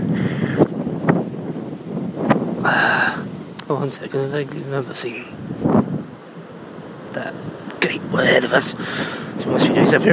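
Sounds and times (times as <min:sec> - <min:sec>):
rain: 0:00.0 - 0:10.1
wind: 0:00.0 - 0:10.1
speech: 0:03.7 - 0:05.7, 0:08.2 - 0:10.1.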